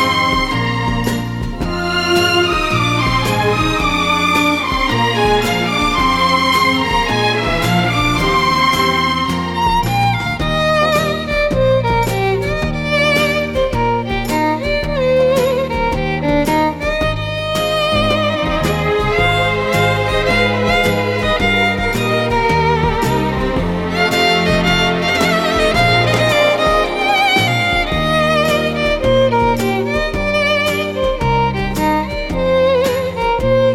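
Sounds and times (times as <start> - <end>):
instrumental song: 0.0 - 33.7.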